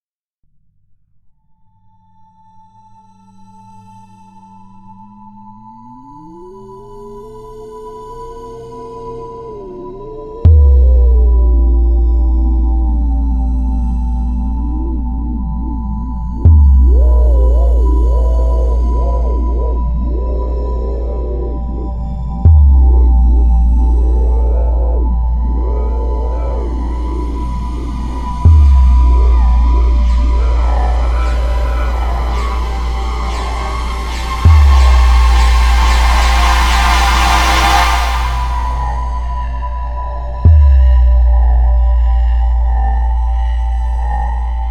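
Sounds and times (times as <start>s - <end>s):
alien ship score: 9.5s - 44.6s.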